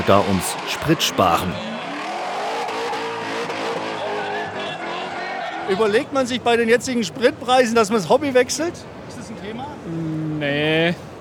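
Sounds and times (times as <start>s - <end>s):
speech: 0.0s - 1.8s, 5.7s - 11.1s
drifting cars with squealing tires: 0.0s - 6.4s.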